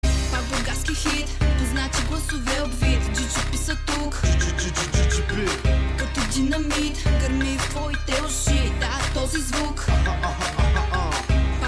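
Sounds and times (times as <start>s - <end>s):
win music: 0.0s - 11.6s.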